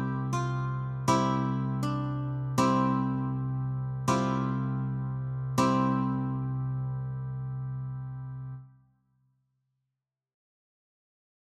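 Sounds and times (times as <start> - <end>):
guitar notes and chords: 0.0 - 8.6.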